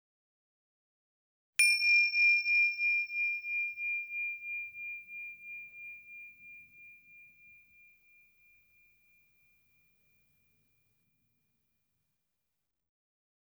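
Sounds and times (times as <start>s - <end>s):
small bell struck to start a meditation exercise: 1.6s - 9.2s.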